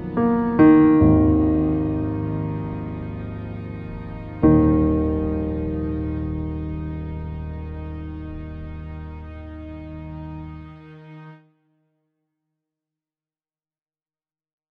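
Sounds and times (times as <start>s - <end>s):
piano music from Bhutan: 0.0s - 11.4s.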